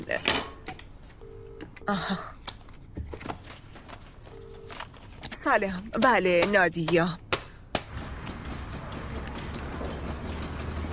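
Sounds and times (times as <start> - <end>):
speech: 0.0 - 0.4, 1.9 - 2.4, 5.4 - 7.2
faint noise: 0.0 - 10.9
telephone keypad dialing tones: 1.2 - 1.9, 4.3 - 4.8.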